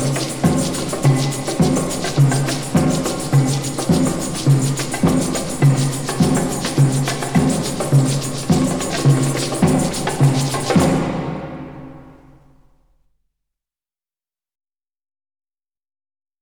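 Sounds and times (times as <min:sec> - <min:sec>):
batucada drumming: 0:00.0 - 0:12.4.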